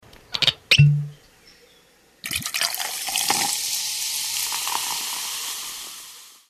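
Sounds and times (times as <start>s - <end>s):
beer opening: 2.2s - 6.4s.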